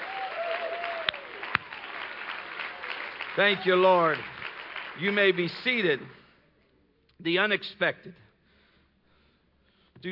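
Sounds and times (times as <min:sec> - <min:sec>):
audience clapping hands: 0:00.0 - 0:06.2
speech: 0:03.4 - 0:04.3, 0:05.0 - 0:06.2, 0:07.2 - 0:08.2.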